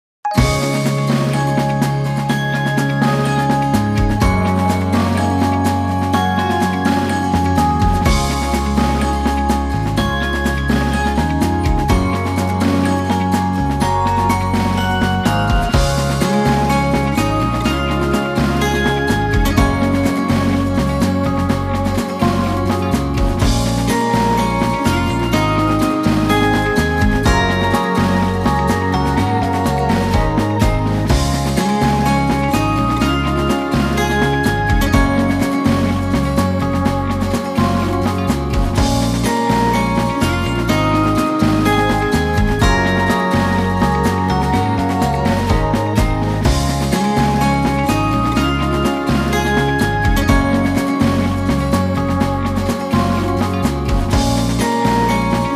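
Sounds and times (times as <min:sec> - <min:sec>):
menu event music: 0:00.3 - 0:55.5.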